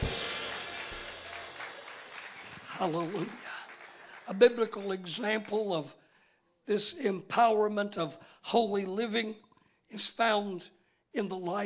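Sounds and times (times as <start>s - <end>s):
church congregation clapping hands in praise: 0.0s - 5.9s
speech: 2.8s - 3.6s, 4.3s - 6.0s, 6.6s - 11.6s.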